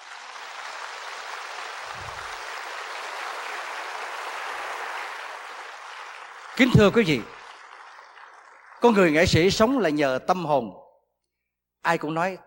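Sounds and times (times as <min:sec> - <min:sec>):
audience applause: 0:00.0 - 0:09.9
speech: 0:06.6 - 0:07.3, 0:08.8 - 0:10.8, 0:11.8 - 0:12.4.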